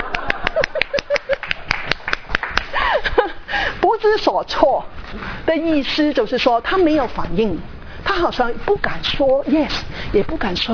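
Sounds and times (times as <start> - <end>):
audience applause: 0.0 - 2.8
speech: 4.0 - 10.7.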